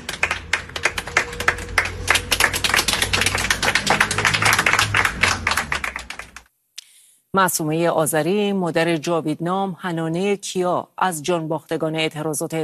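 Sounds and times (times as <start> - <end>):
audience clapping at a memorial gathering for people killed in the protests: 0.0 - 6.5
speech: 7.4 - 12.6.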